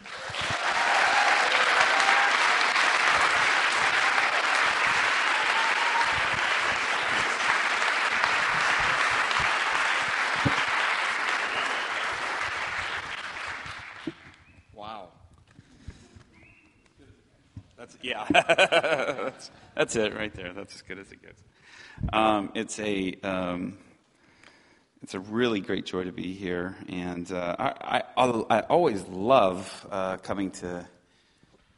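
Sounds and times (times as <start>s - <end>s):
audience clapping to welcome a speaker at a Yorkshire gathering: 0.0s - 14.5s
laughter: 18.2s - 19.6s
speech: 18.3s - 23.9s, 25.1s - 31.0s.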